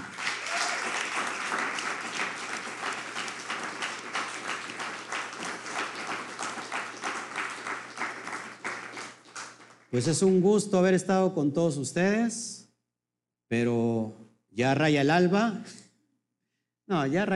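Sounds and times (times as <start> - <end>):
audience applauding: 0.0 - 10.3
speech: 9.9 - 12.6, 13.5 - 15.8, 16.9 - 17.3.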